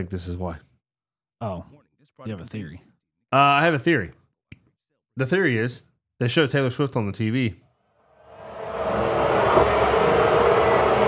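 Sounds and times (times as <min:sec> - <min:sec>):
speech: 0:00.0 - 0:00.7, 0:01.4 - 0:04.2, 0:05.2 - 0:07.6
stadium crowd booing: 0:08.3 - 0:11.0.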